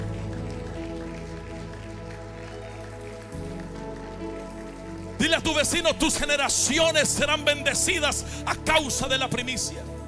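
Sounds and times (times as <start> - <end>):
audience applauding: 0.0 - 8.0
speech: 5.2 - 10.0.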